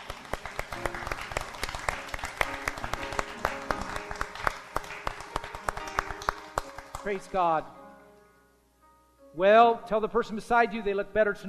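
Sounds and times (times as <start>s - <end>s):
audience applause: 0.0s - 7.4s
speech: 7.0s - 7.8s, 9.4s - 11.4s.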